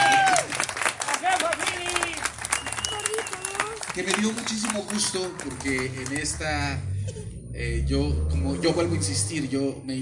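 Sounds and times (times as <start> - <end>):
audience applause: 0.0 - 6.8
speech: 4.0 - 10.0.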